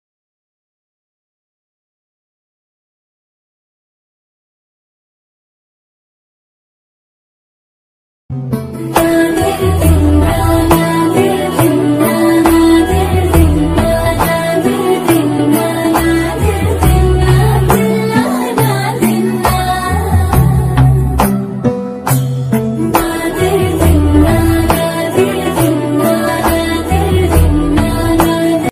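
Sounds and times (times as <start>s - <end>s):
background music ringtone: 8.3s - 28.7s.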